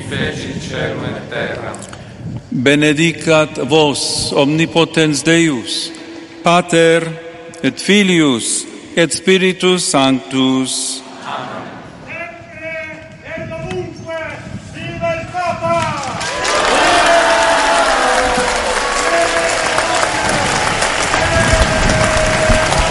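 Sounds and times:
speech: 0.1s - 11.6s
congregation applauding Pope Leo XIV: 15.8s - 22.8s.

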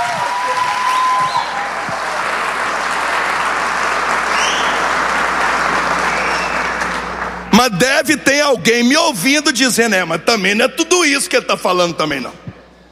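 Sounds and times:
audience applause: 0.0s - 7.5s
speech: 7.6s - 12.5s.

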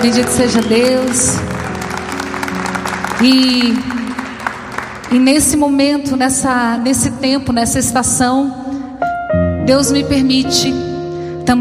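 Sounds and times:
speech: 0.0s - 1.6s, 3.2s - 3.9s, 5.1s - 8.6s, 9.6s - 10.9s, 11.5s - 11.6s
audience applause: 0.0s - 5.2s.

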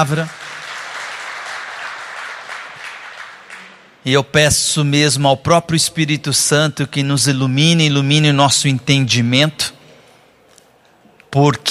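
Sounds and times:
speech: 0.0s - 0.4s, 4.0s - 9.8s, 11.3s - 11.6s
audience applauding: 0.0s - 3.9s.

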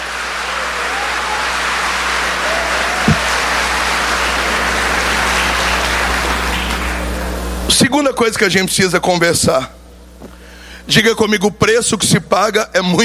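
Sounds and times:
audience applauding: 0.0s - 7.6s
speech: 8.0s - 9.8s, 10.9s - 13.0s.

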